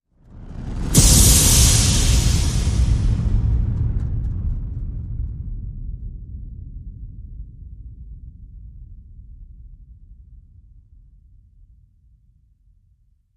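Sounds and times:
horror hit: 0.2 - 6.7.

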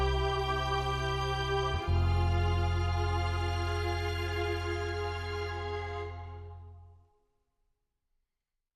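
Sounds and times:
strings: 0.0 - 6.9.

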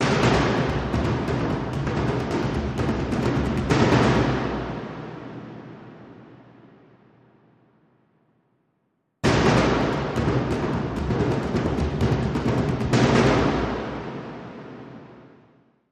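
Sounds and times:
dhol drum played by hand: 0.4 - 4.3, 9.6 - 13.7.

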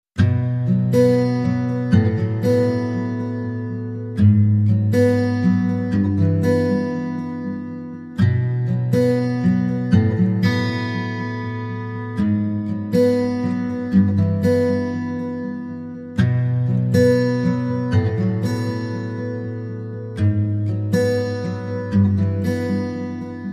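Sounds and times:
guitar: 0.2 - 23.5.

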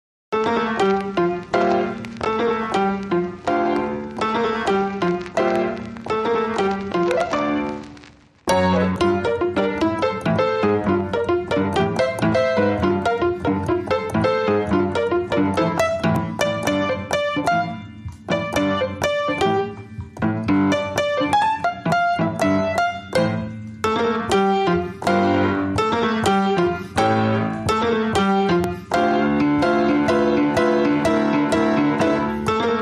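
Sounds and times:
solo piano: 0.3 - 32.8.

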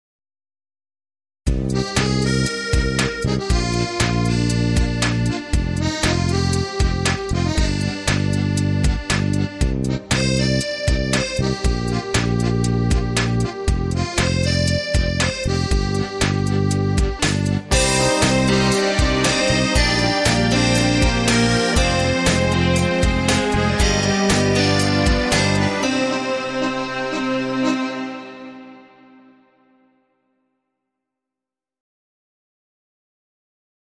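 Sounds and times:
accordion song: 1.7 - 29.6.

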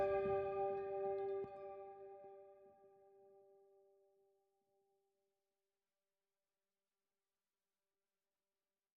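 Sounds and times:
gamelan-style piano: 0.0 - 2.0.

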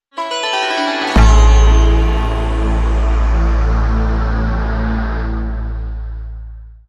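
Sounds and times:
hit: 1.2 - 6.6.

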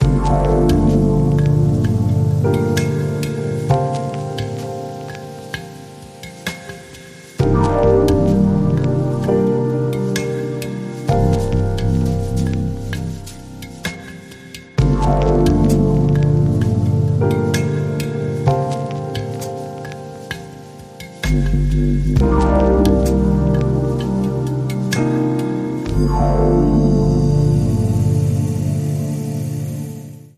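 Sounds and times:
deep chill mantra instrumental: 0.0 - 30.3.

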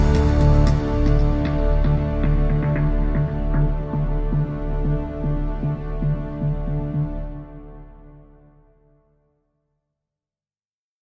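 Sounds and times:
strings: 0.0 - 8.6.

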